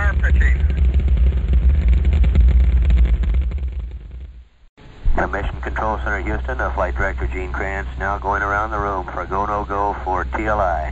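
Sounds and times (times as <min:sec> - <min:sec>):
Saturn V rocket engines roaring at launch: 0:00.0 - 0:10.9
speech: 0:05.3 - 0:10.9.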